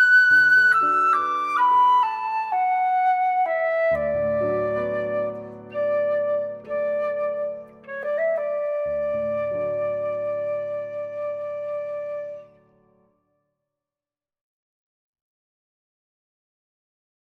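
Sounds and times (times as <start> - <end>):
flute playing a berceuse: 0.0 - 12.7.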